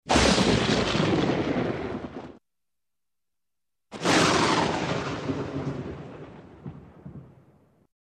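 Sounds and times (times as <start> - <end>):
lightning strike: 0.0 - 2.4, 4.0 - 7.4.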